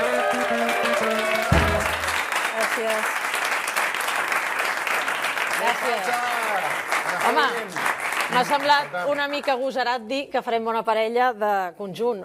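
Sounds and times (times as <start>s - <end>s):
audience applause: 0.0s - 9.4s
speech: 2.8s - 3.2s, 5.8s - 6.4s, 7.2s - 12.2s.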